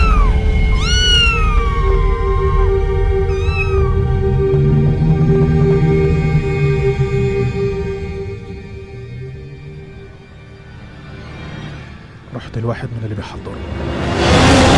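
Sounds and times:
ghostly cats meowing in a horror story: 0:00.0 - 0:04.5
eerie drone: 0:00.0 - 0:14.7.

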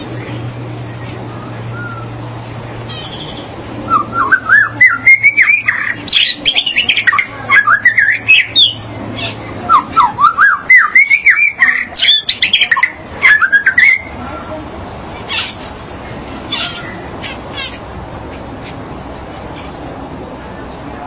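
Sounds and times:
magpie-robin or shama song: 0:00.9 - 0:14.6.

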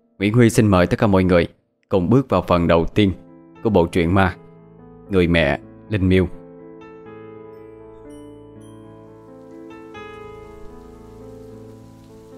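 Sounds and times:
speech: 0:00.2 - 0:04.4, 0:05.1 - 0:06.4
heavy rain: 0:09.1 - 0:12.3.

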